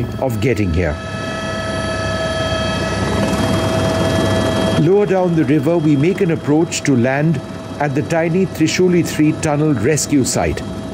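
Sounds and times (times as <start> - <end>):
speech: 0.0 - 1.2, 4.8 - 10.7
helicopter rotor blades: 0.0 - 10.9.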